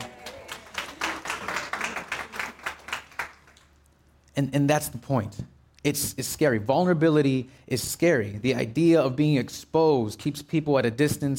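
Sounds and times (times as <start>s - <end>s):
audience applause: 0.0s - 3.7s
speech: 4.4s - 11.3s.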